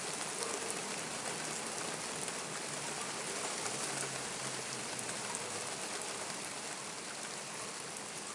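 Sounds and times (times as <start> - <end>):
mild rain: 0.0 - 8.3.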